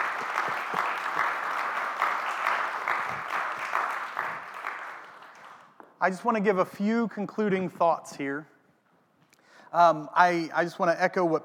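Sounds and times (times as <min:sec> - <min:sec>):
audience applause: 0:00.0 - 0:05.8
speech: 0:06.0 - 0:08.5, 0:09.7 - 0:11.4.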